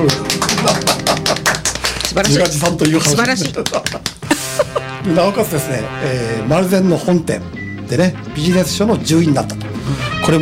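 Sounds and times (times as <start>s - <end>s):
speech: 0.0s - 0.3s, 2.1s - 10.4s
applause: 0.0s - 4.3s
laughter: 0.4s - 5.2s.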